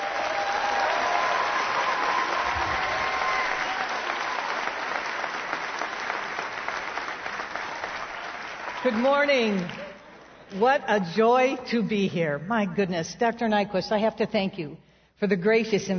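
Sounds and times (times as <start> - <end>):
audience applause welcoming a guest speaker: 0.0 - 10.6
speech: 8.8 - 9.8, 10.5 - 15.9.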